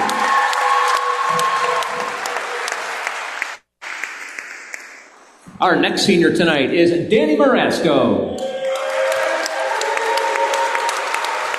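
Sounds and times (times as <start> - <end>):
crowd applauding a senior player at a school senior-night ceremony: 0.0 - 5.2, 8.4 - 11.5
speech: 5.6 - 8.4.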